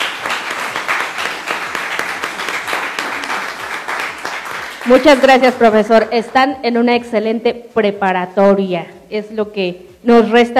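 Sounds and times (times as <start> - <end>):
audience applause: 0.0 - 5.2
speech: 4.9 - 10.5.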